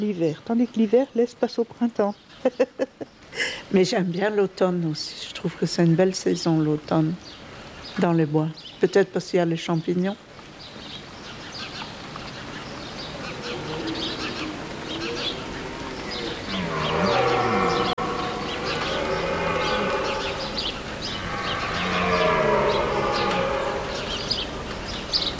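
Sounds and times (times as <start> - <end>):
speech: 0.0 - 7.4, 8.0 - 10.3
hiss: 0.0 - 25.3
red deer stags belling: 11.4 - 25.3.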